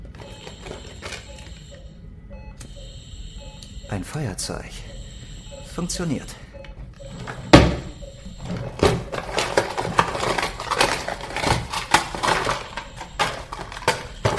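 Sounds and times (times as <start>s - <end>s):
speech: 3.9s - 4.9s, 5.8s - 6.4s
rummaging through a laboratory cabinet: 7.1s - 14.3s.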